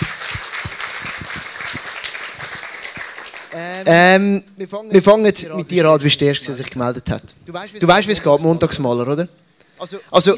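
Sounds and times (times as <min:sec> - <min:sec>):
audience applause: 0:00.0 - 0:03.8
speech: 0:03.6 - 0:10.3.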